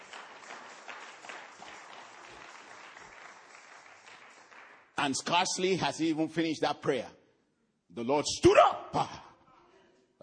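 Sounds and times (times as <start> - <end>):
audience hand clapping: 0.0 - 5.6
speech: 5.0 - 7.2, 8.0 - 9.2.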